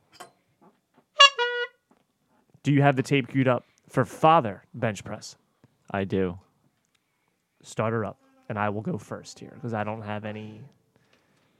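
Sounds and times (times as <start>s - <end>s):
honk sound effect: 1.2s - 1.8s
speech: 2.6s - 6.4s, 7.6s - 10.8s.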